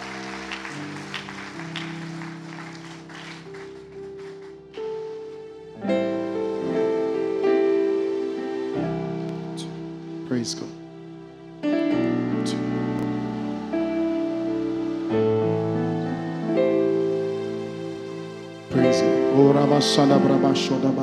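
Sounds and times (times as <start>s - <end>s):
audience applause: 0.0s - 4.8s
held keyboard chords: 0.0s - 21.0s
organ-like music: 0.0s - 21.0s
speech: 10.4s - 10.8s, 19.0s - 21.0s.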